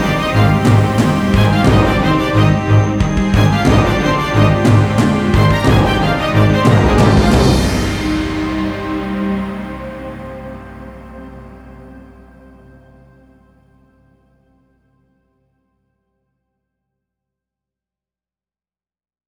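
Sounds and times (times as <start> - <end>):
storm: 0.0 - 10.7.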